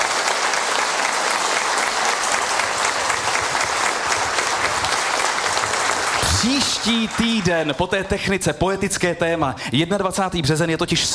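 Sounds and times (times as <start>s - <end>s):
audience applause: 0.0s - 8.4s
speech: 6.4s - 11.1s.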